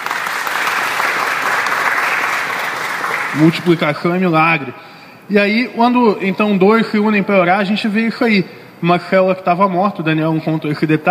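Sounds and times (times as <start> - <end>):
audience applause: 0.0 - 3.9
speech: 3.4 - 11.1.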